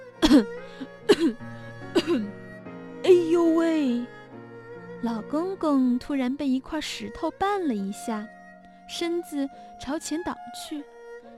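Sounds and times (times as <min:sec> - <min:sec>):
old man coughing loudly: 0:00.2 - 0:01.4, 0:02.0 - 0:02.3
speech: 0:00.3 - 0:02.4, 0:03.1 - 0:04.2, 0:05.0 - 0:10.9.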